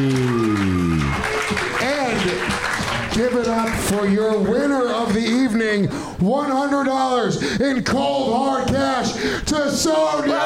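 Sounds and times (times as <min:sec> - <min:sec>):
crowd applauding: 0:00.0 - 0:05.2
speech: 0:03.9 - 0:10.4.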